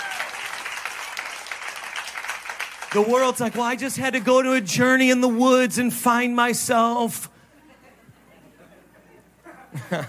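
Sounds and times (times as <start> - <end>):
audience clapping: 0.0 - 5.0
speech: 2.9 - 7.4
laughter: 7.5 - 10.0.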